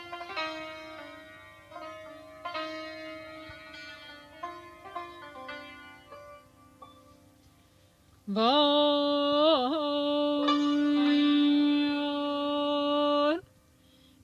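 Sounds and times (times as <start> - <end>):
santur playing a dastgah: 0.0 - 7.9, 9.7 - 13.2
person singing: 8.3 - 13.4.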